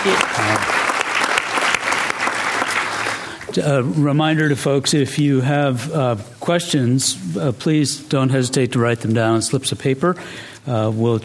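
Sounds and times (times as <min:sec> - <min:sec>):
audience applause for a speaker after a talk: 0:00.0 - 0:03.5
speech: 0:03.6 - 0:11.2.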